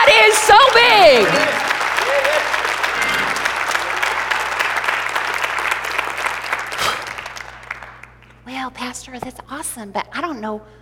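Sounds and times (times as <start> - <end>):
crowd shouting and cheering: 0.0 - 6.2
speech: 9.1 - 10.8.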